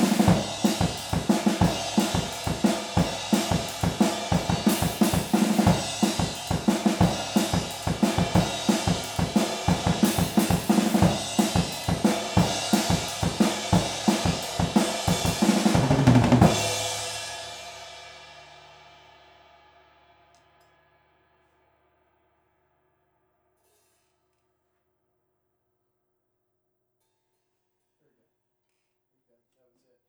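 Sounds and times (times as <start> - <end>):
drums recorded with Rode stereo overhead microphones: 0.0 - 20.3.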